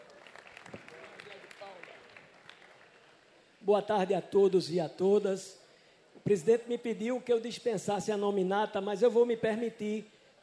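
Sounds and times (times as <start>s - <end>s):
crowd applauding: 0.0s - 3.3s
speech: 3.6s - 5.6s, 6.2s - 10.4s.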